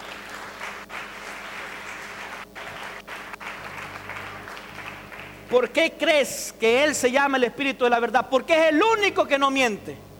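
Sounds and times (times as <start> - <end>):
applause: 0.0 - 5.6
speech: 5.5 - 10.0.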